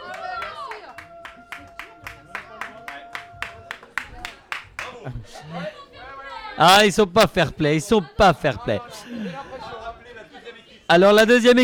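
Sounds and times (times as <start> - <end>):
audience clapping in a steady rhythmic beat: 0.0 - 5.2
voices talking and calling out: 0.0 - 11.6
speech: 5.0 - 5.9, 6.6 - 9.8, 10.9 - 11.6.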